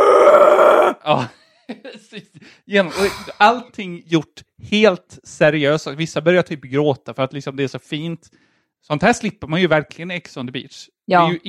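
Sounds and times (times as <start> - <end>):
person imitating battle scream: 0.0 - 1.0, 2.9 - 3.4
speech: 1.0 - 11.4.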